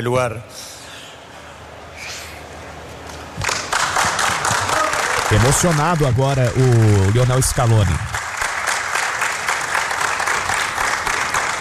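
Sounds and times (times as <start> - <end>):
speech: 0.0 - 0.8, 5.3 - 8.1
audience applause in a press conference room: 3.1 - 11.5.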